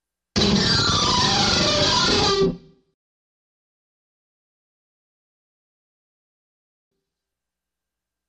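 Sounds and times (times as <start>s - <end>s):
solo guitar riff: 0.4s - 2.8s.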